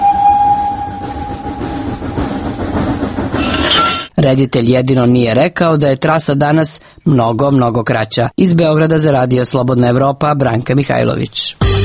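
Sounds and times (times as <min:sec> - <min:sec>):
high-pitched squeal: 0:00.0 - 0:04.1
train rumbling past: 0:00.0 - 0:04.1
speech: 0:04.2 - 0:11.7.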